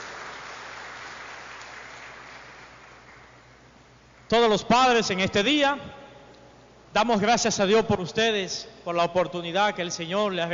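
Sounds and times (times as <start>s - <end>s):
audience applause: 0.0s - 3.4s
speech: 4.3s - 6.0s, 6.9s - 10.5s.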